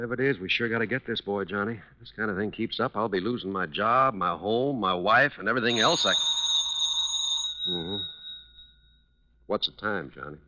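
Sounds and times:
speech: 0.0 - 6.4, 9.5 - 10.4
telephone ringing with a high-pitched electronic tone: 5.6 - 8.8.

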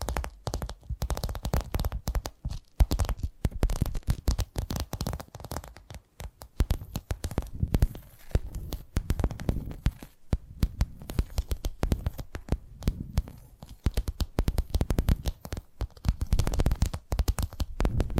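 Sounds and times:
finger tapping and clicking: 0.0 - 18.1
soft rumbling scratch: 7.3 - 13.9, 17.8 - 18.1.

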